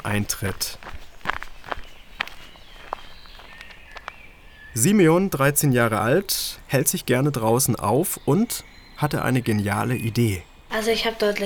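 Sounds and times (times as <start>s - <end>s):
speech: 0.0s - 1.0s, 4.8s - 11.4s
crunching footsteps at walking pace: 0.0s - 5.5s
faint birdsong chirping and whistling: 0.0s - 11.4s.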